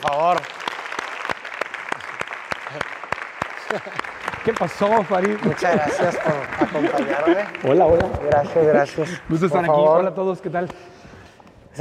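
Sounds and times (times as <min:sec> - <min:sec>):
audience applause: 0:00.0 - 0:09.4
laughter: 0:03.5 - 0:09.9
speech: 0:03.7 - 0:10.9.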